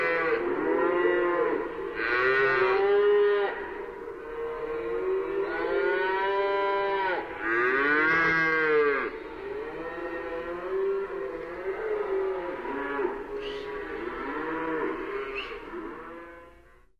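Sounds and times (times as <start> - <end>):
herd of cows: 0.0 - 16.9.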